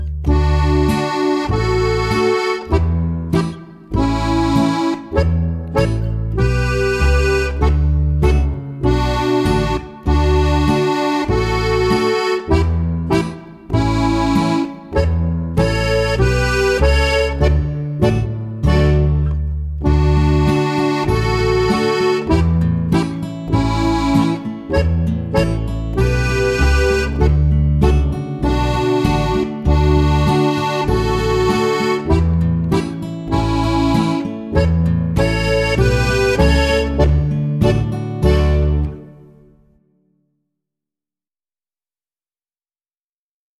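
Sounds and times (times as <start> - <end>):
polka on three-row button accordion: 0.2 - 39.3.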